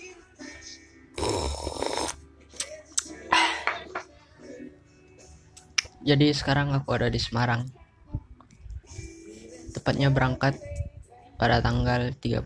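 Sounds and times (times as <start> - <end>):
slurping a drink: 1.2 - 2.2
speech: 6.0 - 7.8, 9.9 - 10.7, 11.4 - 12.4.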